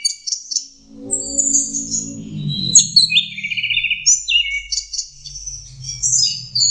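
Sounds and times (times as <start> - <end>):
orange-headed thrush singing: 0.7 - 5.4.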